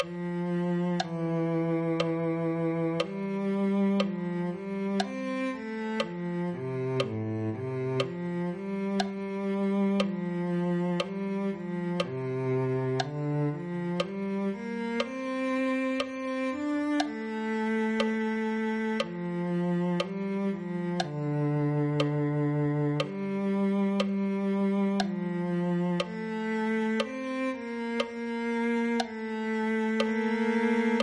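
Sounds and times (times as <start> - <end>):
cello: 0.0 - 31.0.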